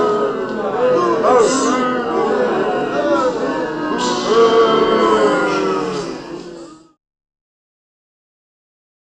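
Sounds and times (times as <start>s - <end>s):
extra large upset crowd booing: 0.0s - 7.0s.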